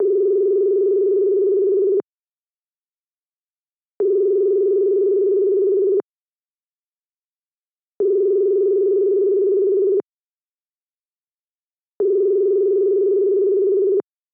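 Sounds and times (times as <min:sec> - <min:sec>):
telephone: 0:00.0 - 0:02.0, 0:04.0 - 0:06.0, 0:08.0 - 0:10.0, 0:12.0 - 0:14.0.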